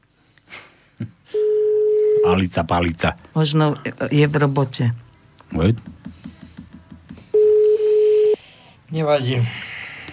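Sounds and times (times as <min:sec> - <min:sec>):
telephone ringing tone while placing a call: 0:01.4 - 0:02.4, 0:07.4 - 0:08.4
speech: 0:02.3 - 0:06.0, 0:09.0 - 0:09.7.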